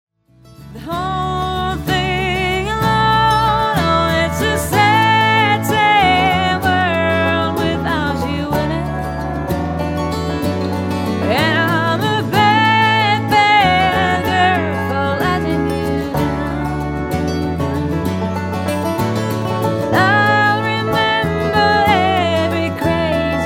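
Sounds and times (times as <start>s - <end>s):
banjo: 0.3s - 23.4s.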